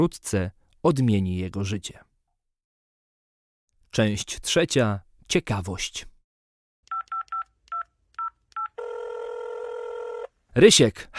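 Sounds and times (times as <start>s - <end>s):
speech: 0.0s - 2.1s, 3.9s - 6.1s, 10.6s - 11.1s
telephone number being dialed: 6.9s - 10.3s.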